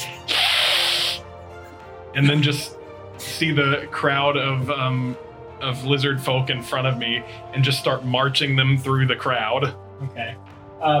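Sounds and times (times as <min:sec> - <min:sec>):
person imitating a hiss: 0:00.0 - 0:01.3
speech: 0:02.1 - 0:10.9.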